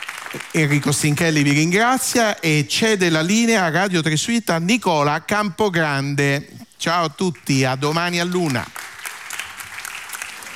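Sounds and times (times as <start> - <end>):
audience applause: 0.0 - 1.3, 8.1 - 10.5
speech: 0.3 - 8.9.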